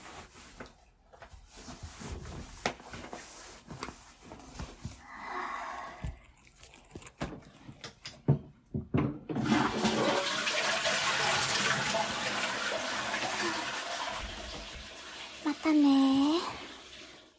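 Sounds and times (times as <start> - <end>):
urinating in a toilet after lunch: 3.1 - 8.2, 9.3 - 17.3.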